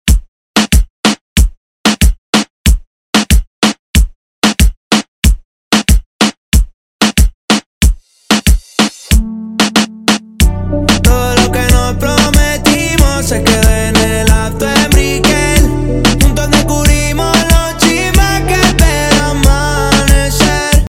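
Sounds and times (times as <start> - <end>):
reggaeton remix: 0.0 - 20.8.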